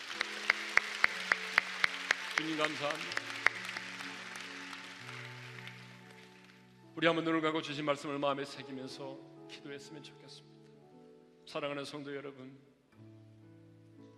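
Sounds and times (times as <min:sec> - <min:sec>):
audience applauding: 0:00.0 - 0:06.8
speech: 0:02.4 - 0:03.3, 0:07.0 - 0:10.5, 0:11.5 - 0:12.7.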